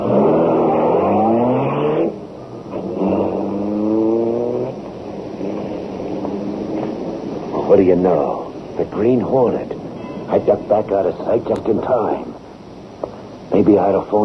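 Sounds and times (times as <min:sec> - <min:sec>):
car engine accelerating hard with gear shifts: 0:00.0 - 0:07.7
speech: 0:07.8 - 0:09.7, 0:10.3 - 0:12.4, 0:13.5 - 0:14.2.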